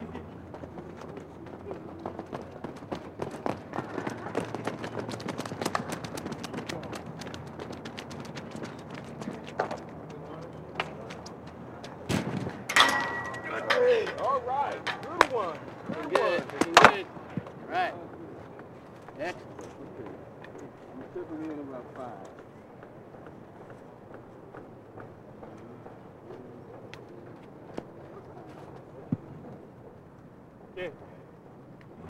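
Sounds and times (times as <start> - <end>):
track and field athletes running: 0.0 - 30.0
track and field high jump: 1.0 - 17.6.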